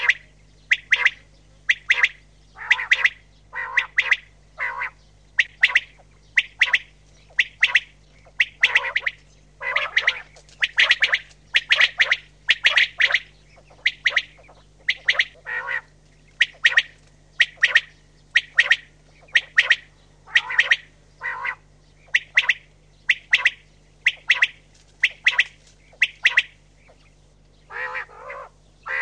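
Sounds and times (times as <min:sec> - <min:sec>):
common quail calling: 0:00.0 - 0:29.0.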